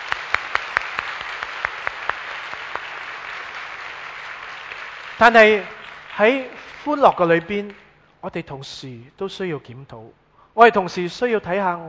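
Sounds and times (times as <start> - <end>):
audience applause: 0.0 - 7.8
speech: 5.2 - 11.8.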